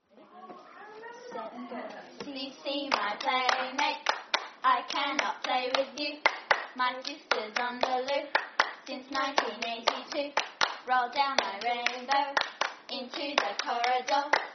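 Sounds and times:
clapping: 2.9s - 10.8s, 11.4s - 14.5s.

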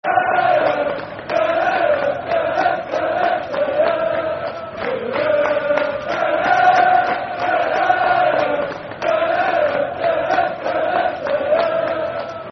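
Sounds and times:
football crowd chanting: 0.0s - 12.5s.

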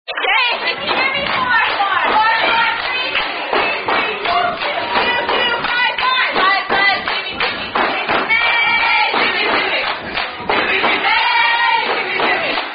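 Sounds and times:
people singing a drinking game song: 0.6s - 12.7s.

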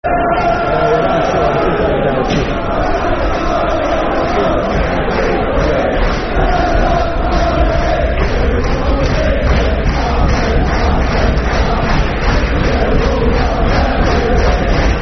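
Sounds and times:
football crowd chanting: 0.0s - 15.0s.

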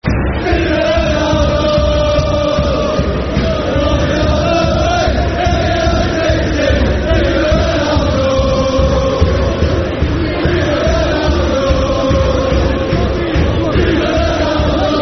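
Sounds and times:
football crowd chanting: 0.0s - 15.0s.

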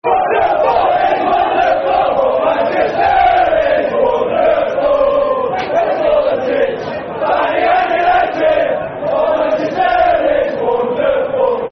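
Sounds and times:
football crowd chanting: 0.0s - 11.6s.

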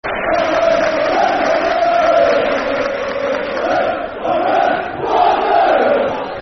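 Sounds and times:
football crowd chanting: 0.1s - 6.4s.

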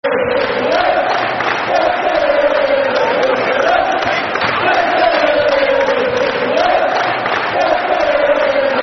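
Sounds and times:
football crowd chanting: 0.0s - 8.8s.

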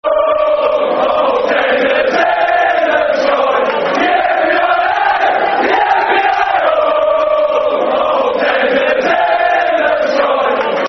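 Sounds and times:
football crowd chanting: 0.0s - 10.8s.

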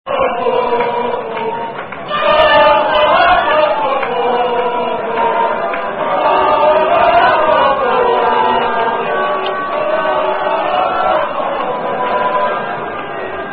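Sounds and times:
French football crowd chanting: 0.1s - 13.5s.

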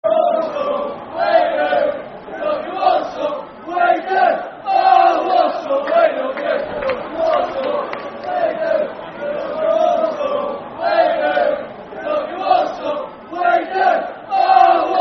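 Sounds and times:
football crowd chanting: 0.0s - 15.0s.

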